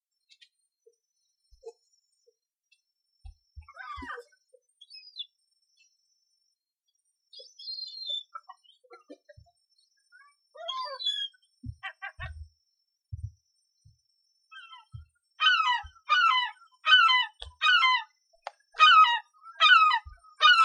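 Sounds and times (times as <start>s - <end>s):
seagulls calling: 10.6s - 12.5s, 14.6s - 18.1s, 18.8s - 20.6s.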